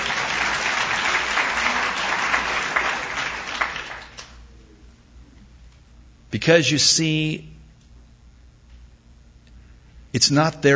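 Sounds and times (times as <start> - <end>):
crowd applauding: 0.0 - 4.4
speech: 6.4 - 7.6, 10.1 - 10.7.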